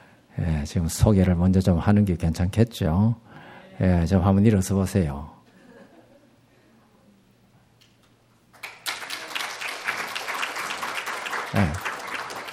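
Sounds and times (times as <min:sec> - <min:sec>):
speech: 0:00.6 - 0:05.4
crowd applause: 0:08.6 - 0:12.5.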